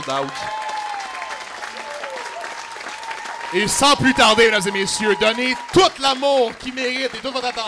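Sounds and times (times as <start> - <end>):
speech: 0.0 - 0.6, 3.5 - 7.6
audience applause at a show: 0.0 - 7.6
faint whoops: 0.3 - 5.8.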